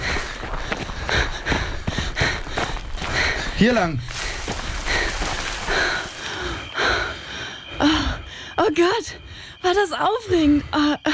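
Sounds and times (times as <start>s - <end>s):
people running through a hedge: 0.0s - 6.2s
hedge foliage brushing and rustling: 2.6s - 6.8s
speech: 3.6s - 4.1s, 8.6s - 11.1s.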